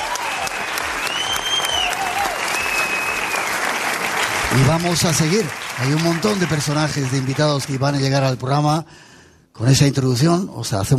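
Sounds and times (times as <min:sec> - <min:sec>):
audience applause: 0:00.0 - 0:08.1
speech: 0:04.5 - 0:10.9.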